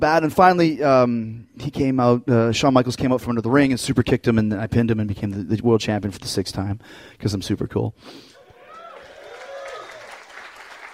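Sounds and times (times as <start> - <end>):
speech: 0.0 - 8.3
audience applause: 8.4 - 10.9.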